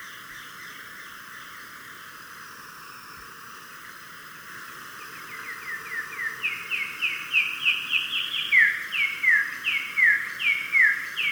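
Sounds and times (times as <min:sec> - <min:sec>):
olive tanager song: 0:00.0 - 0:02.2, 0:04.8 - 0:11.2.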